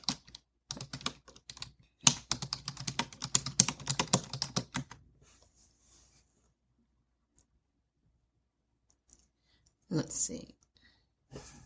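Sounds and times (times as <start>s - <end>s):
rapid typing on a computer keyboard: 0.0s - 5.0s
speech: 10.0s - 10.6s.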